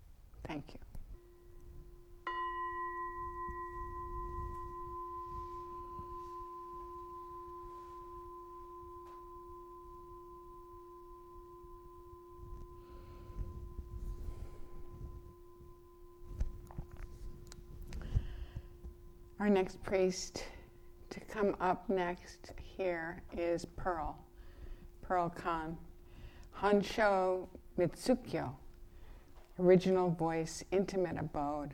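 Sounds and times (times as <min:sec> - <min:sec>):
speech: 0:00.4 - 0:01.0, 0:19.4 - 0:20.6, 0:21.3 - 0:24.2, 0:25.1 - 0:25.9, 0:26.6 - 0:28.6, 0:29.6 - 0:31.7
single struck bell ringing for acknowledgement: 0:01.2 - 0:27.3
faint rustling and shuffling: 0:03.8 - 0:09.5, 0:12.2 - 0:19.5.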